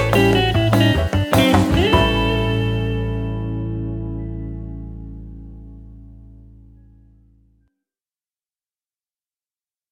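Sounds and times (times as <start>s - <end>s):
jazz blues music in A: 0.0s - 7.4s.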